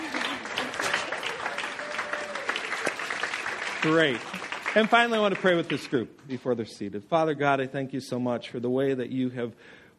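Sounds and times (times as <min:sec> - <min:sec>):
crowd applauding: 0:00.0 - 0:06.5
speech: 0:03.8 - 0:09.9.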